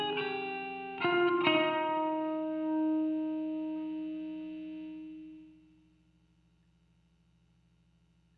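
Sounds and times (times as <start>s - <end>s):
guitar texture: 0.0s - 5.6s.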